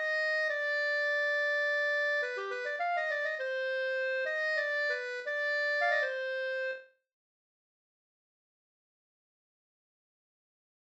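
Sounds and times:
folk song melody: 0.0 - 6.9.

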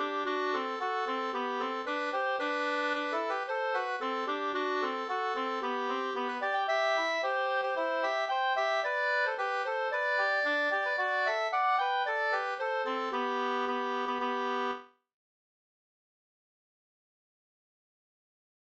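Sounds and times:
two-part bridal march: 0.0 - 14.6.

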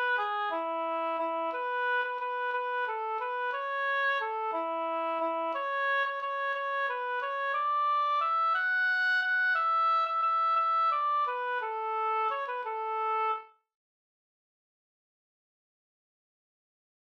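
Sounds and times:
folk dance march in A major: 0.0 - 13.5.

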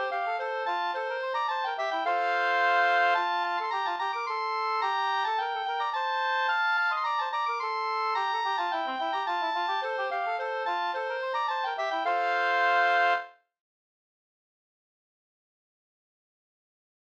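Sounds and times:
slangpolska folk dance tune: 0.0 - 13.3.

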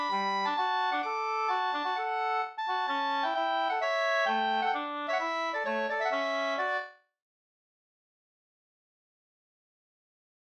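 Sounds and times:
hambo polska dance tune: 0.0 - 6.9.

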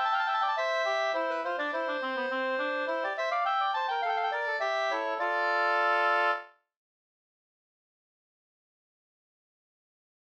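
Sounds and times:
two-part polska dance tune: 0.0 - 6.5.

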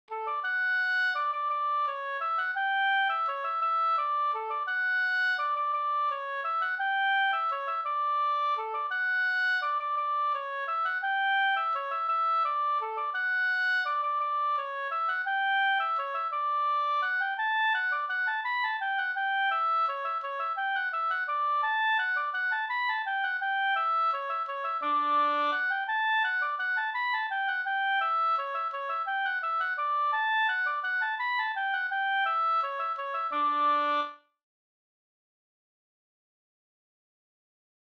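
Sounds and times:
Norwegian waltz music: 0.6 - 34.1.

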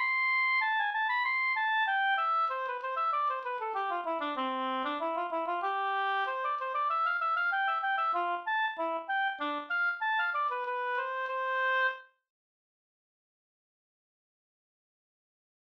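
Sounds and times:
slängpolska folk dance tune: 0.0 - 12.0.

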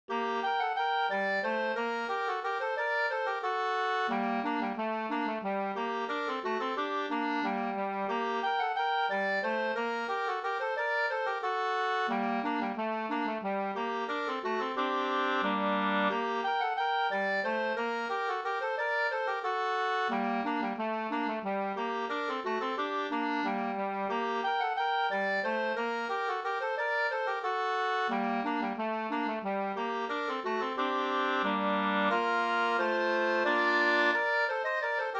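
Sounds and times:
two-part slangpolska: 0.1 - 35.1.

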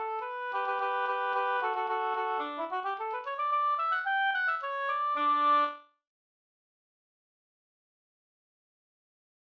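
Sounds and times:
slängpolska folk dance tune from Blekinge: 0.0 - 5.8.

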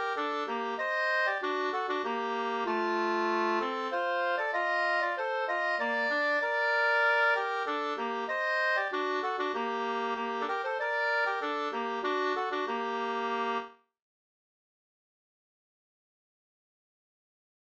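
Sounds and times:
Swedish polska folk tune: 0.0 - 13.8.

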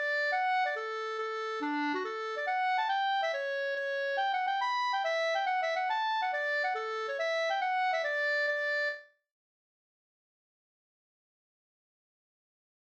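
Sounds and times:
hambo polska folk dance tune: 0.0 - 9.0.

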